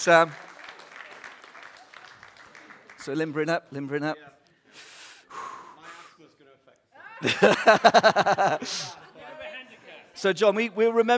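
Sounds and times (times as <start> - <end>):
speech: 0.0 - 0.4, 3.1 - 4.9, 7.2 - 8.9, 10.2 - 11.1
round of applause: 0.0 - 3.4
laughter: 7.0 - 10.1.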